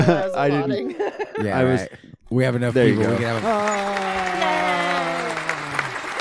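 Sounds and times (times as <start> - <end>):
drawn-out voiced tone: 0.0 - 2.0, 2.7 - 5.6
speech: 0.0 - 4.8
laughter: 0.0 - 6.1
audience applause for the guests at a live show: 2.7 - 6.1.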